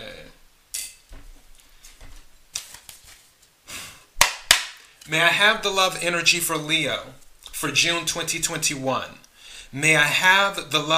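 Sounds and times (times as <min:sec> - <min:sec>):
tarot cards handled and set aside: 0:01.8 - 0:03.6, 0:04.2 - 0:05.1
speech: 0:05.1 - 0:10.9.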